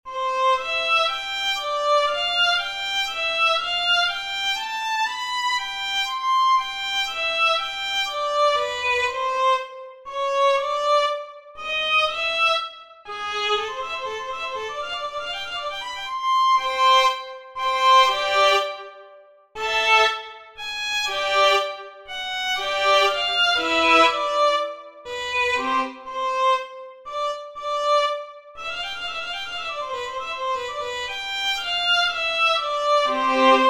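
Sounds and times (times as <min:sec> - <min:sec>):
violin solo: 0:00.0 - 0:33.6.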